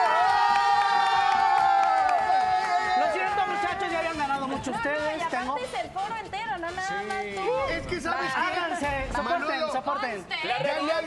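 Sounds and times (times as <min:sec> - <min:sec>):
studio audience cheering and whooping: 0:00.0 - 0:03.8
steady studio audience applause: 0:00.0 - 0:04.0
speech: 0:04.6 - 0:11.0.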